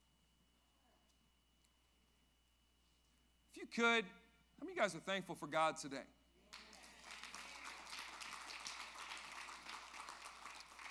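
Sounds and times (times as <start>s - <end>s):
speech: 3.6s - 6.2s
faint audience clapping: 6.5s - 10.8s.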